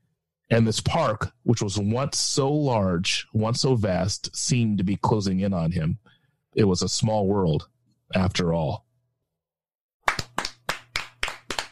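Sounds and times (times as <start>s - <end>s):
speech: 0.5s - 8.8s
clapping: 10.0s - 11.7s.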